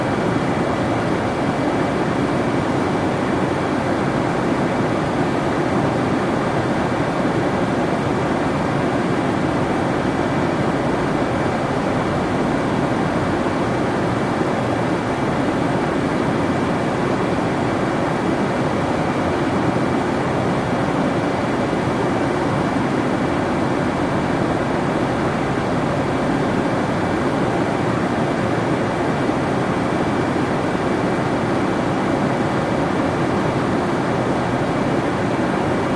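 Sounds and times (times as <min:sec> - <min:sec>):
747 jet interior noise: 0:00.0 - 0:35.9.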